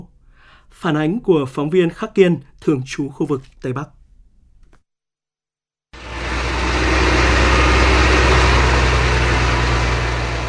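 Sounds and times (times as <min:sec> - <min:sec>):
speech: 0:00.7 - 0:04.0
excavators and bulldozers roaring: 0:06.0 - 0:10.4.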